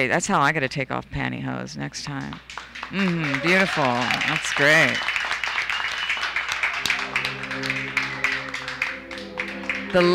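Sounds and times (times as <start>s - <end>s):
speech: 0.0s - 5.2s, 9.9s - 10.1s
excited burlesque crowd applauding: 2.3s - 10.1s
humming voices or music: 5.8s - 10.1s.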